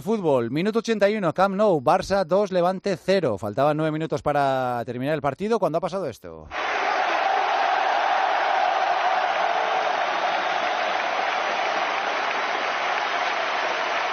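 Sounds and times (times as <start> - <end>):
speech: 0.0 - 6.8
Camp Nou stadium crowd ovation: 6.5 - 14.1.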